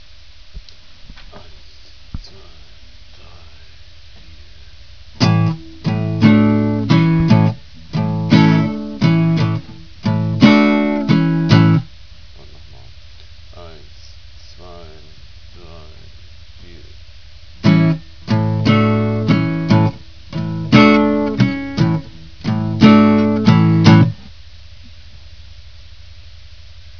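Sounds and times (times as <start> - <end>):
guitar: 4.2 - 13.4, 17.5 - 25.2.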